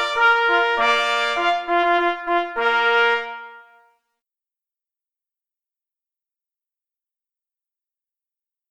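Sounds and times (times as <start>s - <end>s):
march music: 0.0s - 3.9s.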